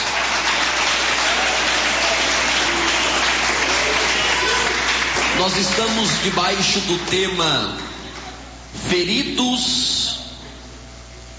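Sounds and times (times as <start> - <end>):
audience clapping hands: 0.0 - 8.3
speech: 5.4 - 7.9, 8.8 - 10.2.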